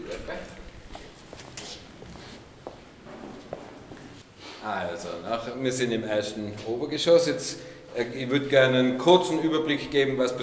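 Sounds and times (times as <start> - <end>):
footsteps climbing stairs in a converted tobacco factory building: 0.8 - 4.2
speech: 4.6 - 10.4.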